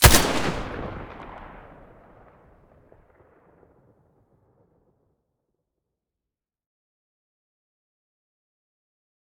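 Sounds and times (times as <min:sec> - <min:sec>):
SCAR rifle muzzle blast: 0:00.0 - 0:02.0.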